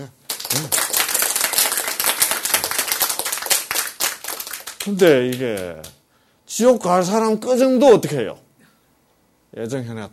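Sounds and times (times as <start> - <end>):
speech: 0.0 - 0.7, 4.8 - 8.4, 9.5 - 10.1
audience clapping: 0.0 - 6.0.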